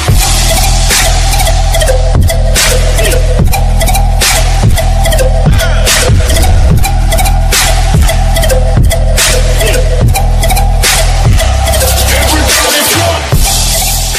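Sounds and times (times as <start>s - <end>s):
English music ringtone: 0.2s - 14.1s.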